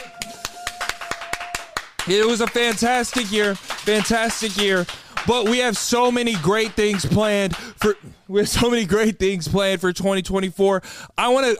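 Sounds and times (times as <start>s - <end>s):
single person clapping hands: 0.0s - 8.0s
speech: 2.1s - 11.5s.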